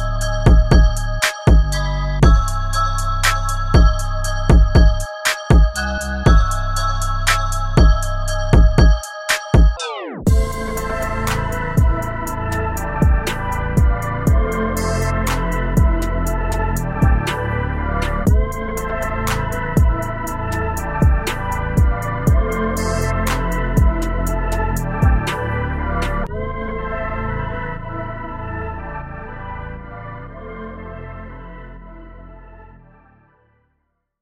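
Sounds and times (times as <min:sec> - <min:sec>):
deep trap beat: 0:00.0 - 0:26.3.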